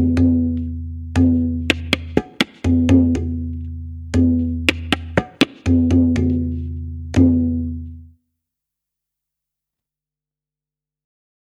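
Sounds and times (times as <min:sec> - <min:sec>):
group piece with tabla: 0:00.0 - 0:08.1.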